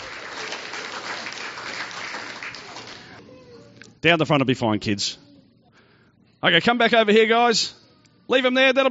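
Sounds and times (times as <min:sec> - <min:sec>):
audience applause: 0:00.0 - 0:03.2
speech: 0:04.0 - 0:05.2, 0:06.4 - 0:08.8.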